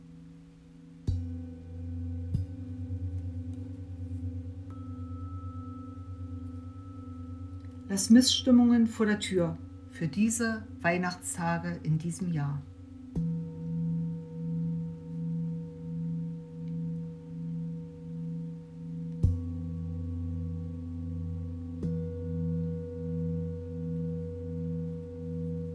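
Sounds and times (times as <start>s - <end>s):
small singing bowl struck and ringing: 0.0s - 25.7s
speech: 7.9s - 13.3s.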